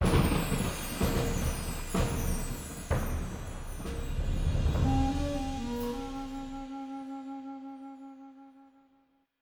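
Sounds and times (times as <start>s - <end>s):
wind: 0.0s - 7.0s.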